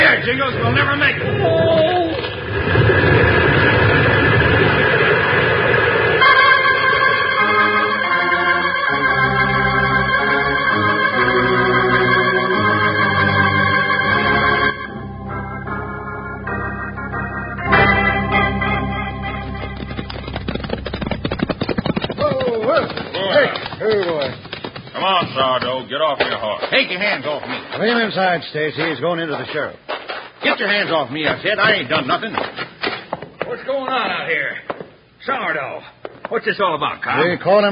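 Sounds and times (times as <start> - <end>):
speech: 0.2 - 2.0, 26.7 - 29.9, 30.5 - 32.6, 33.6 - 34.6, 35.2 - 37.7
rock avalanche thundering down a mountainside: 0.5 - 6.2, 19.7 - 25.6
dramatic orchestral music: 6.2 - 20.3.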